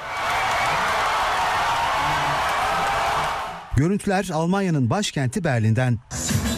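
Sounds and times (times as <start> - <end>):
crowd cries of joy: 0.0 - 3.6
speech: 3.8 - 6.4.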